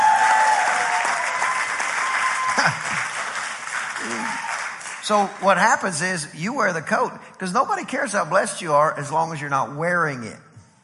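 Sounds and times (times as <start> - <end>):
audience applauding: 0.0 - 6.0
speech: 5.1 - 10.5.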